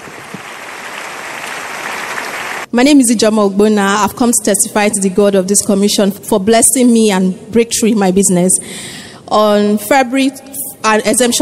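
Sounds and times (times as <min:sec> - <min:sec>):
congregation clapping in praise at a church service: 0:00.0 - 0:02.7
speech: 0:02.8 - 0:11.3.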